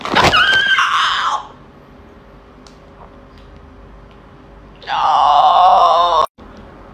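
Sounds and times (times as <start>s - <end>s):
person screaming: 0.2s - 1.6s, 4.8s - 6.4s.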